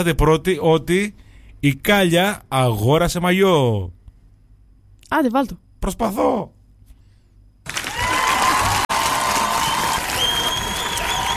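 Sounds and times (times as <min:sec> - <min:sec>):
speech: 0:00.0 - 0:04.0, 0:05.1 - 0:06.6
studio applause: 0:07.6 - 0:11.3.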